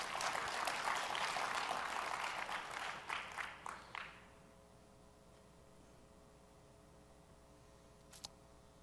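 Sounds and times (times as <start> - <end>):
audience round of applause: 0.0 - 4.2.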